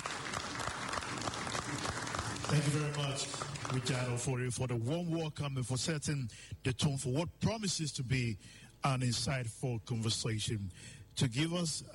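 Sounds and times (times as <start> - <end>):
audience applause: 0.0 - 4.3
speech: 2.5 - 11.9.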